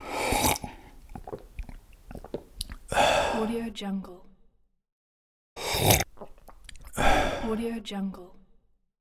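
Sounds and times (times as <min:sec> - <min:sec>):
person drinking: 0:00.0 - 0:03.6, 0:05.6 - 0:07.7.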